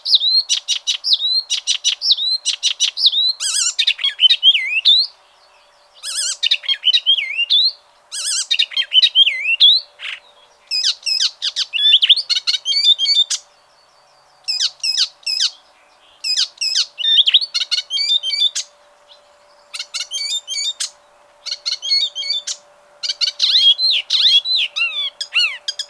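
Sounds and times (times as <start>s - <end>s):
bird singing: 0.0s - 25.8s.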